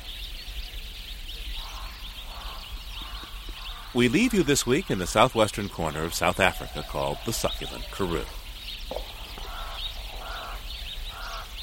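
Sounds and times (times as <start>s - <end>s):
higher bird chirps at dawn: 0.0s - 11.6s
speech: 3.9s - 9.0s
goose-like honking bird calls at dawn: 4.0s - 8.4s.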